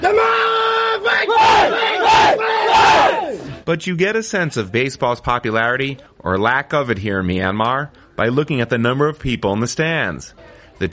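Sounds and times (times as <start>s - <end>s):
baseball team rhythmic chanted shouts: 0.0s - 3.4s
baseball team cheering in unison: 0.0s - 3.5s
speech: 3.7s - 10.9s.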